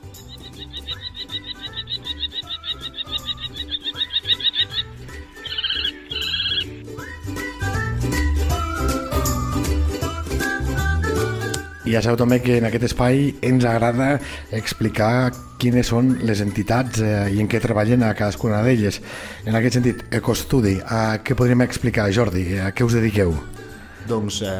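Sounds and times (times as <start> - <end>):
Common Kestrel calling: 0.0 - 6.8
music: 0.0 - 24.5
speech: 11.9 - 24.5.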